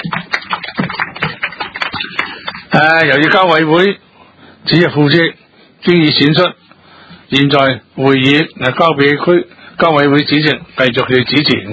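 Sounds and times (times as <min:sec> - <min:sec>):
meeting attendees applauding: 0:00.0 - 0:03.4
speech: 0:02.8 - 0:06.6, 0:07.3 - 0:11.7.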